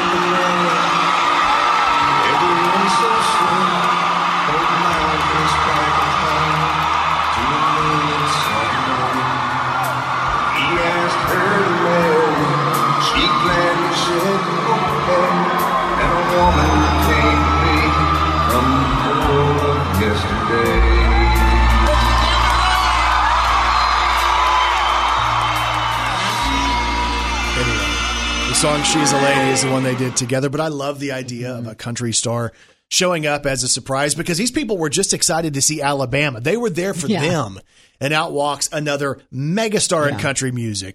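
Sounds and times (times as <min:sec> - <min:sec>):
concert crowd cheering wildly: 0:00.0 - 0:30.6, 0:37.0 - 0:37.4
speech: 0:28.9 - 0:40.9.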